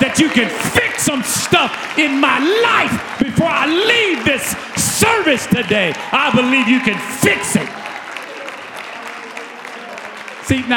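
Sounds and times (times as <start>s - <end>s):
speech: 0.0s - 7.9s, 10.5s - 10.7s
audience clapping: 0.0s - 10.7s.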